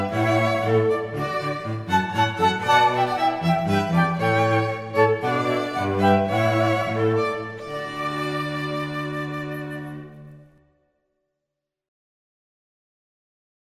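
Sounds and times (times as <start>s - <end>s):
quartet playing a hornpipe: 0.0s - 10.4s.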